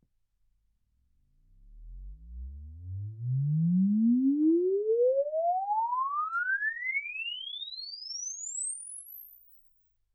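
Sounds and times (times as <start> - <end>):
exponential sine sweep from 10 Hz to 24 kHz: 1.8 - 9.8.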